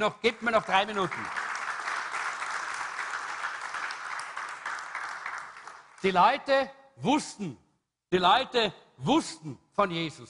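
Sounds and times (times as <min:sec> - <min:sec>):
speech: 0:00.0 - 0:01.4, 0:06.0 - 0:10.2
audience applause: 0:00.4 - 0:06.2.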